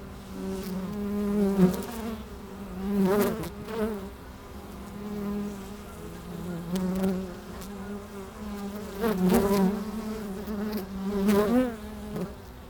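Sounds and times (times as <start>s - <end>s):
honey bees buzzing: 0.0s - 12.6s.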